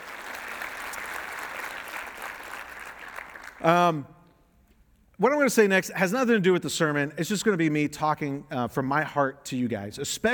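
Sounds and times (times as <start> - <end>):
audience clapping: 0.0 - 3.8
speech: 3.6 - 4.2, 5.2 - 10.3.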